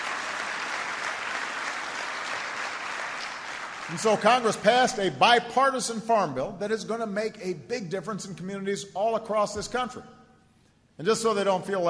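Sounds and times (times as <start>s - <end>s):
crowd applauding: 0.0s - 4.7s
speech: 3.9s - 10.2s, 11.0s - 11.8s.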